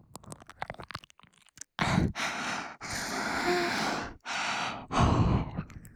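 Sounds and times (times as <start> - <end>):
ear licking on the right side: 1.8 - 5.7.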